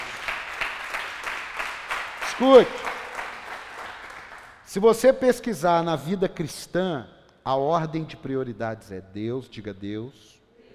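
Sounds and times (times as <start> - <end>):
audience applause: 0.0 - 4.6
speech: 2.4 - 2.9, 4.7 - 10.4.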